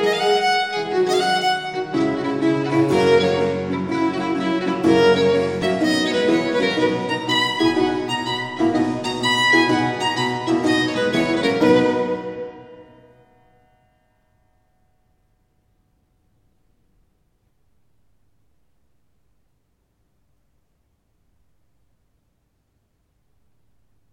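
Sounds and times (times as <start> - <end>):
violin sonata allegro: 0.0 - 13.3.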